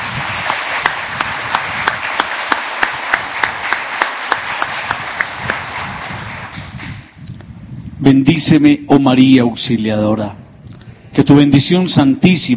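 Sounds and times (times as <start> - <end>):
audience applause: 0.0 - 7.1
speech: 8.0 - 10.4, 11.2 - 12.5.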